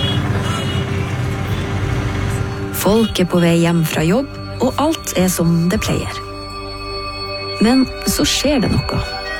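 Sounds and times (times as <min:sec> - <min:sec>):
small mopeds moving through dense city traffic: 0:00.0 - 0:05.2
speech: 0:02.8 - 0:06.3, 0:07.6 - 0:09.2.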